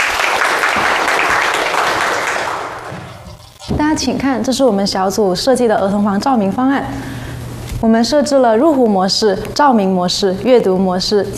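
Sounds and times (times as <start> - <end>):
classroom applause: 0.0 - 3.0
speech: 3.7 - 7.2, 7.8 - 11.3.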